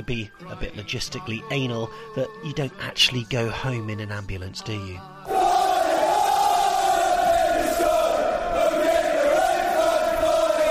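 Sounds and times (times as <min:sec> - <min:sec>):
speech: 0:00.0 - 0:05.5
large football crowd chanting in unison: 0:05.2 - 0:10.6.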